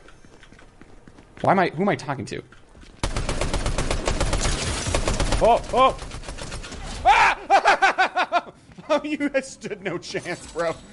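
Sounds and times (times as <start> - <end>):
speech: 1.4 - 2.6, 5.4 - 6.1, 8.9 - 10.9
rapid automatic gunfire in the video game Fortnite: 3.0 - 6.8
person exclaiming: 5.4 - 6.0, 7.0 - 7.6
laughter: 7.1 - 9.3.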